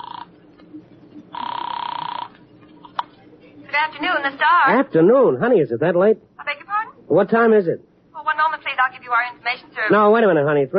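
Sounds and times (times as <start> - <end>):
telephone ringing: 0.0 - 0.5, 1.3 - 2.5
speech: 3.8 - 6.3, 7.1 - 8.5, 9.1 - 10.7.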